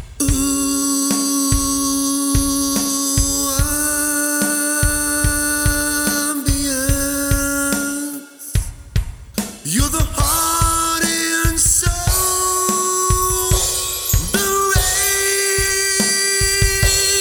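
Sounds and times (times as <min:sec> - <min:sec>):
lead vocals: 0:00.2 - 0:17.1.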